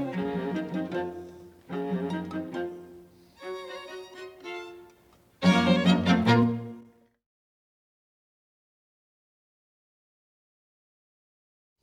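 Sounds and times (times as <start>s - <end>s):
string quartet: 0.0s - 7.0s.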